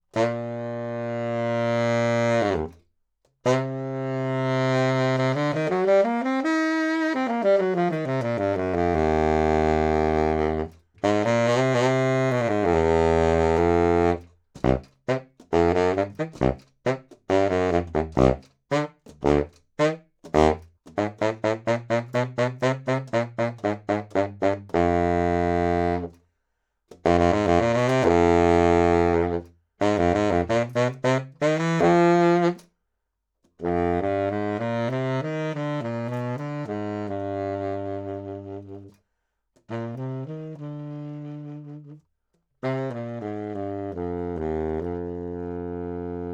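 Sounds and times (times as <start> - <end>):
low baritone saxophone: 0.0 - 26.2, 26.9 - 32.7, 33.5 - 46.3.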